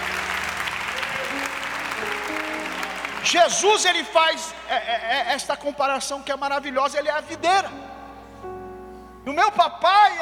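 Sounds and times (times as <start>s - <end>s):
audience applauding: 0.0s - 4.6s
speech: 3.3s - 7.8s, 9.3s - 10.2s.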